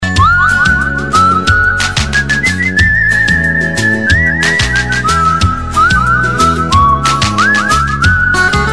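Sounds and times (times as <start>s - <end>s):
whistle: 0.0s - 8.6s.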